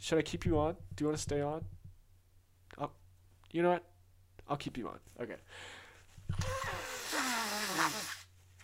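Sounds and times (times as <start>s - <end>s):
speech: 0.0s - 1.8s, 2.7s - 6.9s
person blowing a stuffy nose: 6.3s - 8.3s.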